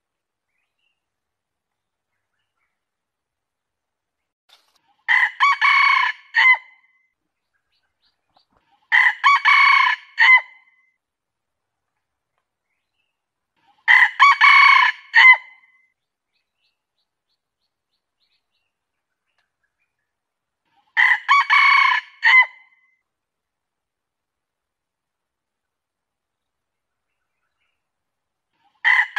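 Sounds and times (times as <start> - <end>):
junglefowl crowing: 5.1 - 6.7, 8.9 - 10.6, 13.9 - 15.5, 21.0 - 22.6, 28.8 - 29.1.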